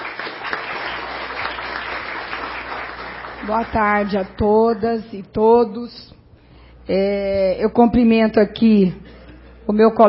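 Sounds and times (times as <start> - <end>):
audience applause: 0.0 - 4.2
speech: 3.4 - 6.2, 6.9 - 9.0, 9.7 - 10.0.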